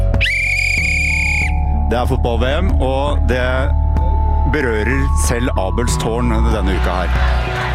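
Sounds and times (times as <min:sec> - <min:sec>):
referee whistle blast: 0:00.2 - 0:01.7
speech: 0:01.9 - 0:03.8, 0:04.5 - 0:07.6.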